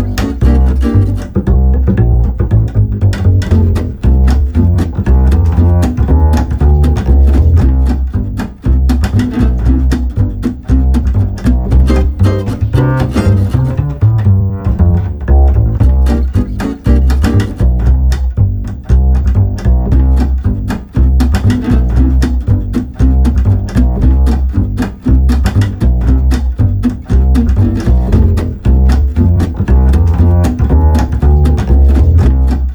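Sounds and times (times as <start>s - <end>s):
old time street guitar and bass playing: 0.0s - 32.7s.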